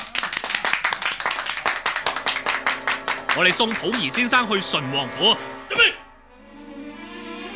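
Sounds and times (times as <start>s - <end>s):
group clapping: 0.0s - 4.8s
speech: 3.4s - 6.0s.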